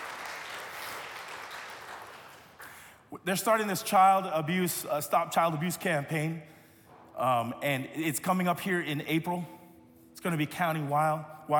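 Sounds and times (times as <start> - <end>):
audience applause: 0.0 - 2.8
speech: 3.1 - 6.6, 7.2 - 9.6, 10.2 - 11.5.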